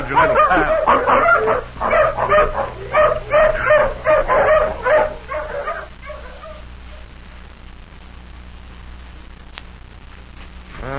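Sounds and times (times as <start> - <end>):
tracking hound barking and yelping: 0.0 - 7.1
faint low hum: 0.0 - 10.9.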